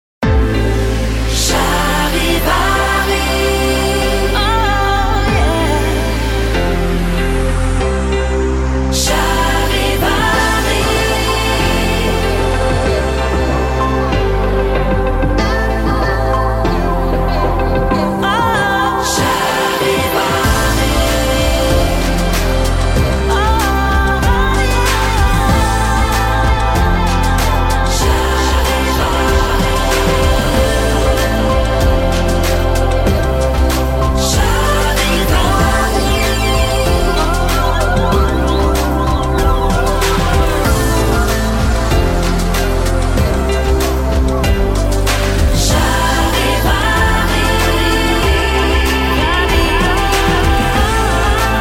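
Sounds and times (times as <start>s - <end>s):
slow theme music: 0.2s - 51.5s.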